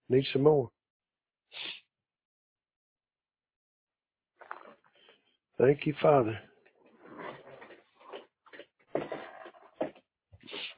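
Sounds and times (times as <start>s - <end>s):
speech: 0.1s - 0.8s, 5.6s - 6.5s
old chair squeaking: 7.0s - 9.9s.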